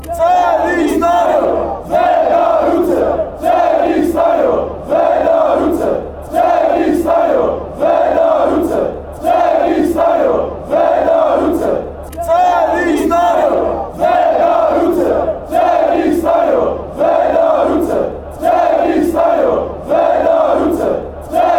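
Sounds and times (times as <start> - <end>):
football chant: 0.0 - 21.5.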